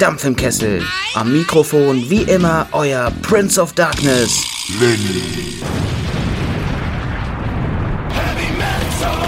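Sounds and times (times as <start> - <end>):
speech: 0.0 - 6.3
firecracker explosion: 5.6 - 9.1.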